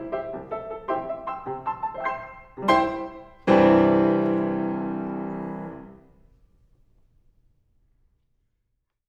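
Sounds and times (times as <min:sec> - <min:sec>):
piano pieces: 0:00.0 - 0:06.3.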